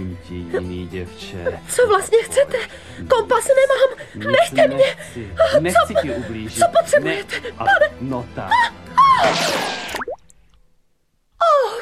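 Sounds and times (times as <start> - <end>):
speech: 0.2 - 9.8
bullet plopping into river water: 9.2 - 10.6.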